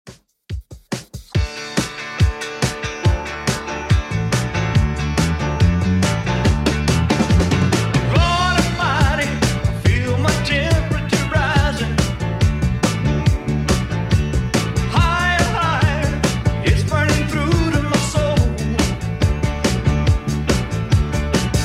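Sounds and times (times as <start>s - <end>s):
70s style music at 141 bpm: 0.1s - 21.6s.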